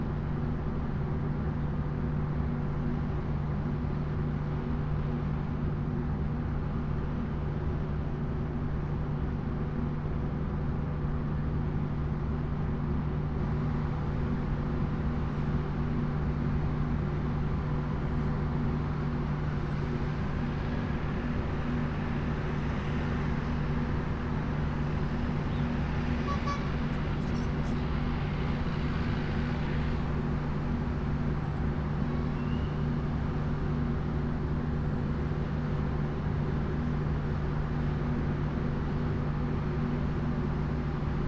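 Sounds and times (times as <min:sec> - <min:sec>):
loud industrial hum: 0:00.0 - 0:41.2
vehicles driving by: 0:20.1 - 0:33.6
forklift horn: 0:26.2 - 0:26.9.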